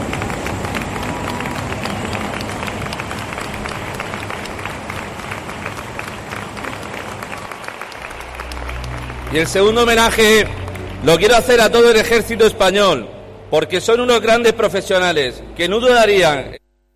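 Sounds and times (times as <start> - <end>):
crowd applause: 0.0 - 12.7
speech: 9.3 - 16.6.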